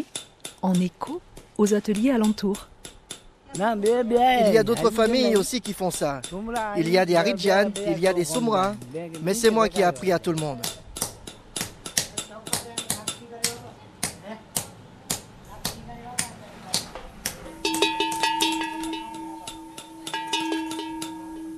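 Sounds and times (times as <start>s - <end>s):
speech: 0.6s - 2.7s, 3.5s - 10.8s
hand-forged iron bells ringing: 17.6s - 21.5s.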